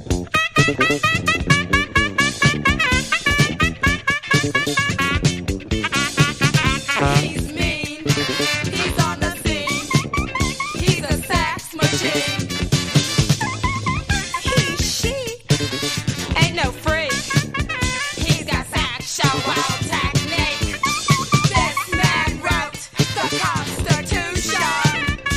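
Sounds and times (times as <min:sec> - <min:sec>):
saxophone: 0:00.2 - 0:25.3.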